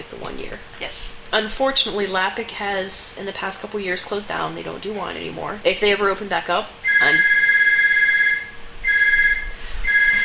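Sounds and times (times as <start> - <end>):
speech: 0.0 - 7.4
telephone ringing with electronic ring tone: 6.9 - 10.2.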